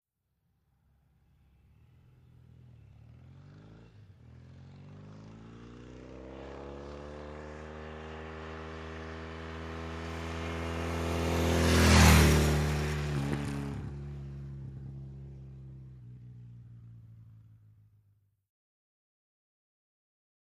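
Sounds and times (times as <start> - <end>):
Norton motorcycle accelerating fast past at 45 mph: 1.4 - 17.5.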